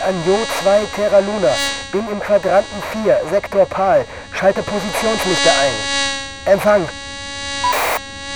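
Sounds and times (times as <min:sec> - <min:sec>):
speech: 0:00.0 - 0:07.0
fly buzzing in the headphones: 0:07.7 - 0:08.0
short bursts of hiss: 0:07.7 - 0:08.0.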